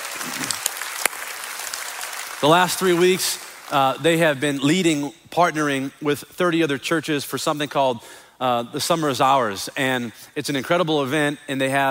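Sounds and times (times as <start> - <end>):
audience clapping: 0.0 - 4.6
speech: 2.4 - 11.8.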